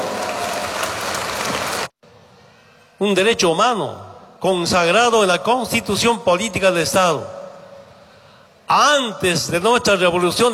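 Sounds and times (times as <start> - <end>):
applause: 0.0 - 1.9
speech: 3.0 - 7.4, 8.7 - 10.5.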